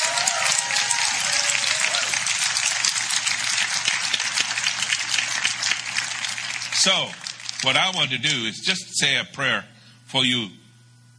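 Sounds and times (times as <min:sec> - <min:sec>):
audience clapping: 0:00.0 - 0:08.4
speech: 0:06.8 - 0:10.6.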